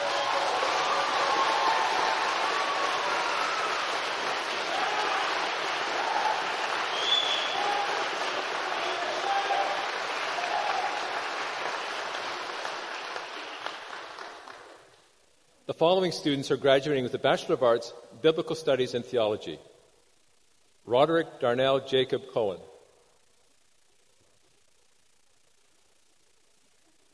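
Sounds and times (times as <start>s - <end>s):
audience applause at graduation ceremony: 0.0s - 14.9s
speech: 15.8s - 19.7s, 20.9s - 22.7s.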